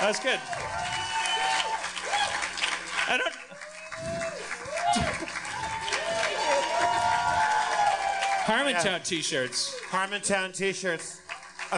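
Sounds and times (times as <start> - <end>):
crowd applause: 0.0 - 11.7
speech: 0.1 - 1.0, 3.1 - 4.4, 8.5 - 11.7
whoops: 0.4 - 2.5, 3.5 - 8.5.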